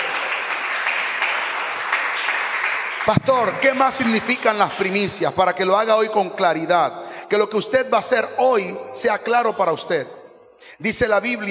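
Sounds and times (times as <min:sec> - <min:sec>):
loud audience applause: 0:00.0 - 0:05.1
speech: 0:03.1 - 0:11.4.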